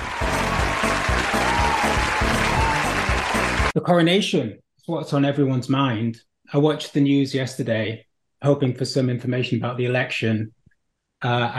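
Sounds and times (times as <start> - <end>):
crowd cheering and applauding: 0.0 - 3.8
speech: 3.8 - 10.6, 11.2 - 11.5.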